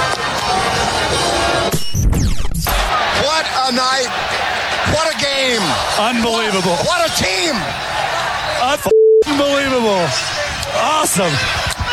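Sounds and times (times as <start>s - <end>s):
stadium crowd cheering: 0.0s - 1.7s, 2.7s - 11.9s
speech: 6.0s - 8.0s, 8.6s - 11.6s.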